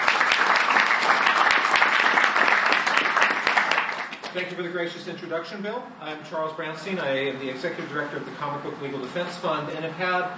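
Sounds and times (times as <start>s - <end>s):
audience applause: 0.0s - 4.3s
speech: 4.4s - 10.3s.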